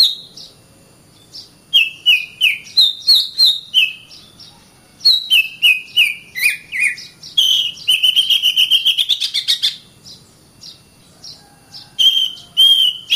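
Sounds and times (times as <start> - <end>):
Oriental magpie-robin singing clear whistled notes: 0.0 - 13.1.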